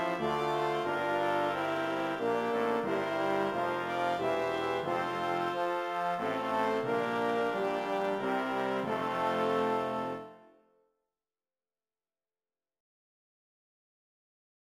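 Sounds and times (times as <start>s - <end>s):
brass instruments: 0.0s - 10.7s.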